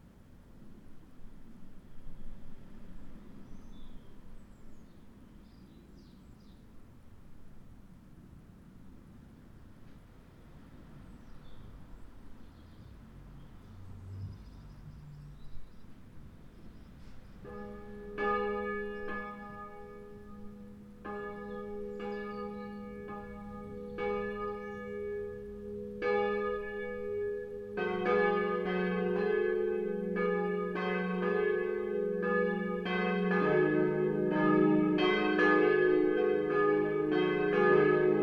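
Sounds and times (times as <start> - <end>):
Petrikirche church bells: 17.4 - 38.2.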